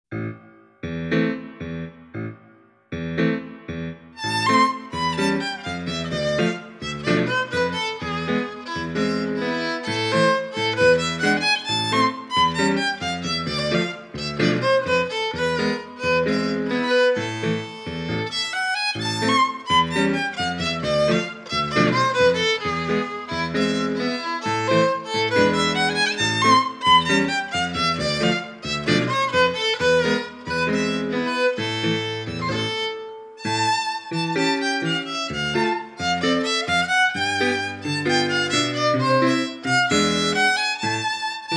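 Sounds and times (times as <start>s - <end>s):
tango music: 0.1s - 41.5s.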